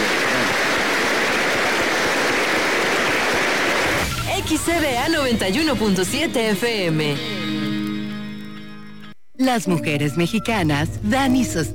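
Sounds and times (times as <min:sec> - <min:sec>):
audience applause: 0:00.0 - 0:04.6
speech: 0:04.6 - 0:07.6, 0:09.4 - 0:11.7.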